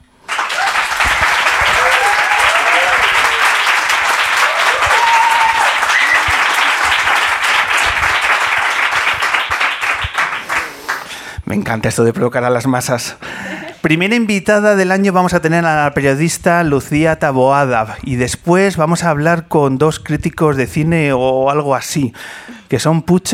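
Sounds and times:
live audience applause: 0:00.2 - 0:11.1
faint voices and cheers: 0:00.3 - 0:06.9
speech: 0:11.5 - 0:23.3.

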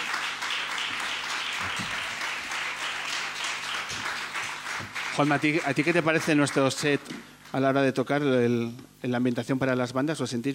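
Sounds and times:
audience applause: 0:00.0 - 0:07.0
speech: 0:05.2 - 0:10.5.

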